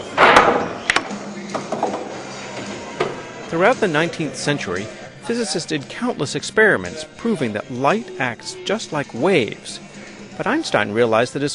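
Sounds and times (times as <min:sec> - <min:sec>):
billiard balls colliding: 0:00.0 - 0:04.2
speech: 0:03.5 - 0:11.5.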